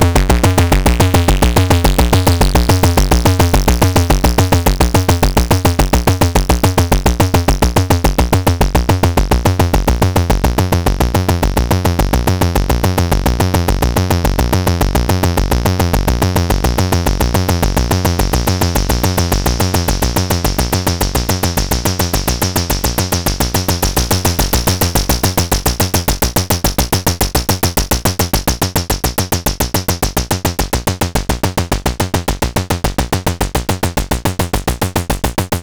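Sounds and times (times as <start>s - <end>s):
deformed bass sound: 0.0s - 35.6s.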